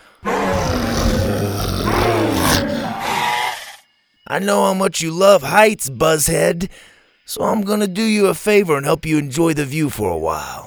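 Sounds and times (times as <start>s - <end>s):
deep rumbling growls: 0.2s - 3.7s
speech: 4.3s - 10.6s.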